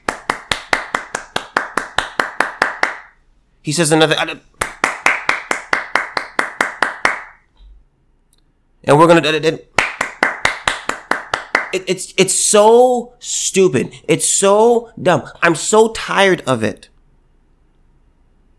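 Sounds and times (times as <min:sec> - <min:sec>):
clapping: 0:00.0 - 0:03.1, 0:04.6 - 0:07.4, 0:09.8 - 0:11.8
speech: 0:03.6 - 0:04.6, 0:08.9 - 0:09.7, 0:11.7 - 0:16.9.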